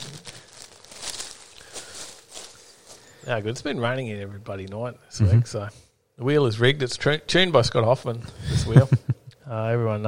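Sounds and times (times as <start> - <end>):
drying towel crinkling: 0.0 - 3.1
speech: 3.2 - 10.0.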